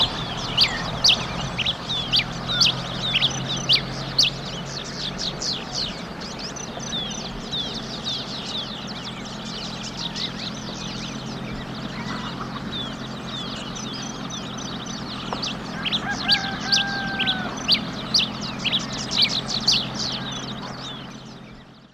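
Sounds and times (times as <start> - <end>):
Red Pileated-Finch calling in Ecuador: 0.0 - 21.9.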